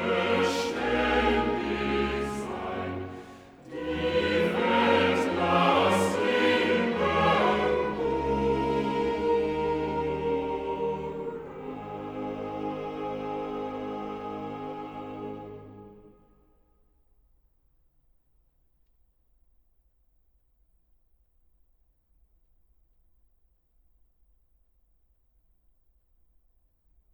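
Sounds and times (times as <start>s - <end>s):
choir singing cantatas: 0.0s - 16.3s.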